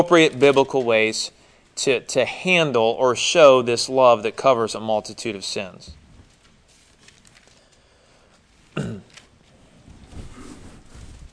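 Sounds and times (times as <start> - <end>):
speech: 0.0 - 6.0
throat clearing: 8.8 - 9.2.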